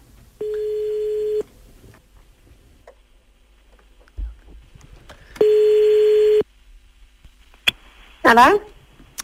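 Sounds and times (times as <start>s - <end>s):
person answering a phone call: 0.4s - 1.4s, 5.4s - 6.4s
telephone ringback tones as a call is placed: 0.4s - 1.4s, 5.4s - 6.4s.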